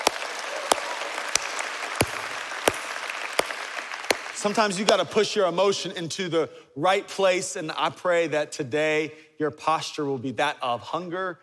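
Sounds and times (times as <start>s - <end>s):
audience hand clapping: 0.0s - 5.1s
speech: 4.4s - 11.4s.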